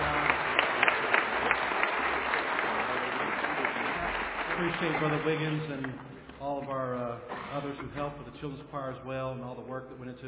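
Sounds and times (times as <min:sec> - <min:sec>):
audience applauding a children's choir: 0:00.0 - 0:06.8
speech: 0:04.6 - 0:10.2.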